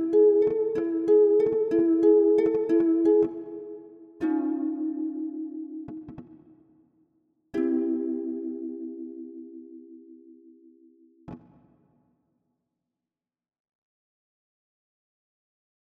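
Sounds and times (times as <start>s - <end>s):
synthesized strings: 0.0s - 6.3s, 7.6s - 10.6s.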